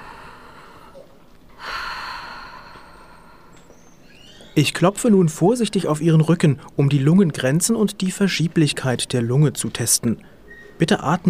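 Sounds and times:
deep breathing in and out through open mouth: 0.0s - 4.0s
speech: 4.6s - 11.2s.

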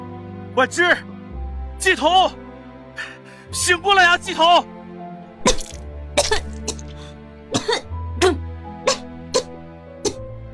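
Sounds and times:
speech: 0.6s - 1.1s, 1.8s - 2.4s, 3.0s - 4.7s
person coughing up water after nearly drowning: 5.4s - 9.5s.

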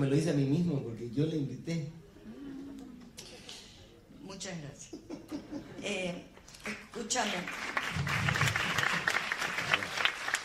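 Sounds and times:
speech: 0.0s - 2.0s, 4.3s - 5.1s, 7.0s - 8.3s
laughter: 4.8s - 5.9s
crowd audience applause: 7.4s - 10.4s.

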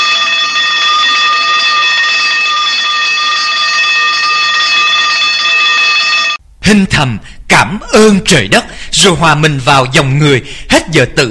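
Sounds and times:
school lights-out electric bell ringing: 0.0s - 6.4s
speech: 6.6s - 11.2s.

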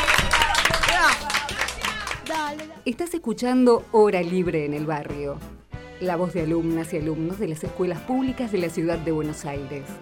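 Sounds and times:
students calling out and cheering: 0.0s - 2.3s
small group of students clapping: 0.0s - 2.8s
speech: 2.9s - 10.0s.

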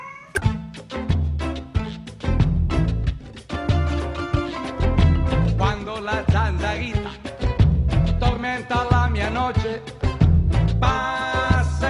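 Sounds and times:
cat meowing: 0.0s - 0.4s
loud rhythmic musical backing with steady beats: 0.4s - 11.8s.

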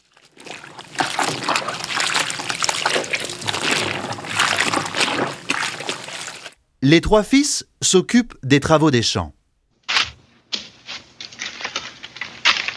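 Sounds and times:
river water splashing from washing clothes: 0.0s - 6.6s
speech: 6.8s - 9.4s.

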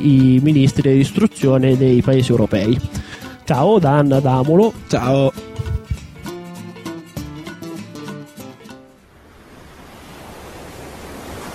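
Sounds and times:
speech: 0.0s - 5.5s
tonal music: 0.0s - 9.0s
ocean surf waves rushing and washing: 4.5s - 11.5s.

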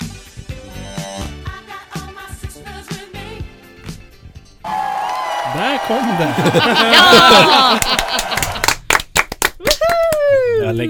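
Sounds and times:
cheerful vocal whooping: 4.7s - 8.7s, 9.6s - 10.6s
hosts clapping by hand: 4.7s - 10.4s
speech: 5.6s - 8.3s
laughter: 6.2s - 8.8s.

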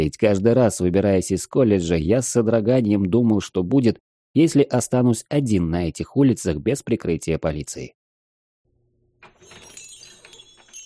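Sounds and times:
speech: 0.0s - 8.0s
door bell tinkling: 9.2s - 10.8s.

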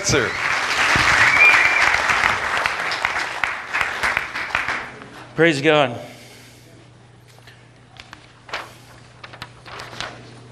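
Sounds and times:
audience applause welcoming a reverend: 0.0s - 5.1s
speech: 0.1s - 1.0s, 5.4s - 6.1s.

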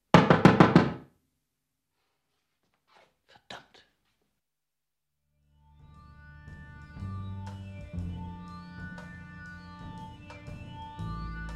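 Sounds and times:
fist pounding on a locked door: 0.2s - 1.0s.

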